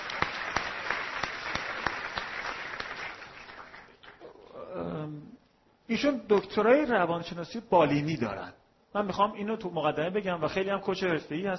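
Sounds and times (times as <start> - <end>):
audience applause: 0.0 - 4.2
speech: 5.9 - 11.5.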